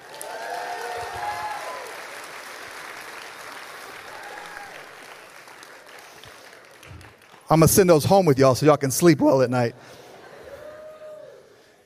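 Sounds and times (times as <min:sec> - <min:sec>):
audience applause: 0:00.0 - 0:08.0
speech: 0:07.5 - 0:10.0.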